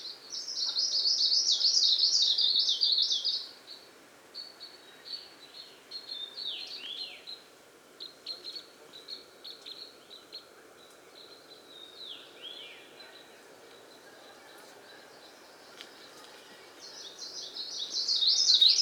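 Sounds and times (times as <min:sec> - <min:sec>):
plumbeitarsus song: 0:00.0 - 0:18.7.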